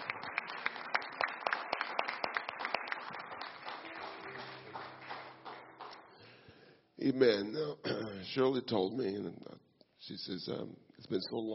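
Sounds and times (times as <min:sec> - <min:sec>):
audience hand clapping: 0:00.0 - 0:06.5
speech: 0:07.0 - 0:11.5.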